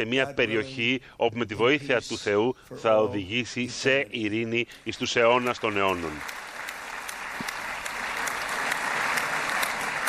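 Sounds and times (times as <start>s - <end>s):
speech: 0.0s - 6.4s
audience applause: 5.4s - 10.0s.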